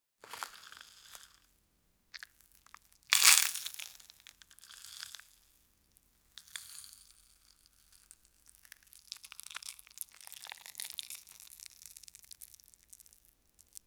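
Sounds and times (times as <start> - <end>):
crispy tofu squeezed and crunching: 0.3 - 1.4, 2.2 - 13.8.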